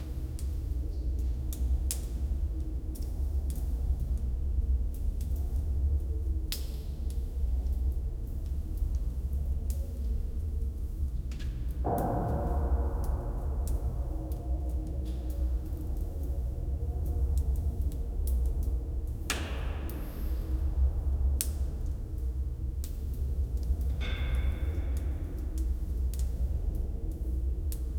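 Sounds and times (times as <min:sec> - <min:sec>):
warm underground chamber ambience: 0:00.0 - 0:27.9.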